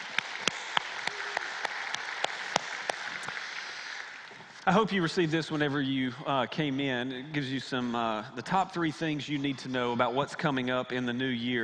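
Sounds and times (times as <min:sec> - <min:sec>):
louder single claps: 0:00.0 - 0:03.5
audience applause in a room: 0:00.0 - 0:04.7
speech: 0:04.7 - 0:11.6.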